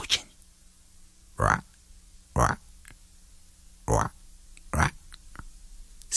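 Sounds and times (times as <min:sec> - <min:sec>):
faint low hum: 0:00.0 - 0:06.1
frog croaking: 0:01.4 - 0:02.7, 0:03.8 - 0:05.5.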